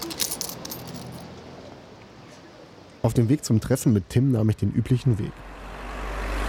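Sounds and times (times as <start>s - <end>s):
coins dropped onto a counter as small change: 0.0s - 1.3s
speech: 3.0s - 5.5s.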